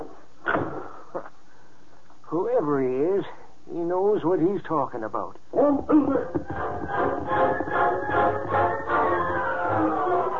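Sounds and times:
speech: 2.3s - 8.5s
back door opening and closing: 6.2s - 10.3s.

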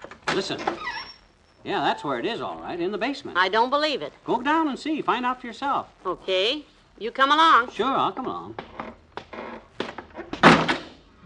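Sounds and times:
speech: 0.4s - 1.0s, 1.6s - 8.7s
basement door with unfixed latch slamming shut: 10.3s - 11.2s.

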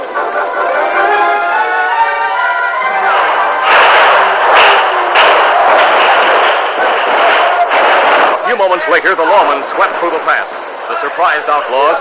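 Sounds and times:
continuous noisy background: 0.0s - 11.9s
gunfire in a shootout between lawmen and outlaws: 3.0s - 10.4s
speech: 8.9s - 11.9s.

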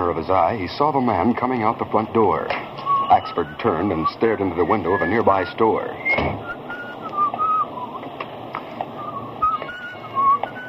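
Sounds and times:
constant hissing noise: 0.0s - 10.6s
speech: 0.2s - 6.6s
man whistling a tune: 2.8s - 8.1s, 8.8s - 10.6s.

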